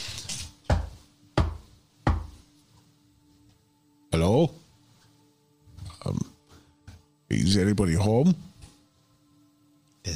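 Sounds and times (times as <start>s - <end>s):
knock on a door: 0.7s - 2.3s
speech: 4.2s - 4.6s, 7.4s - 8.5s.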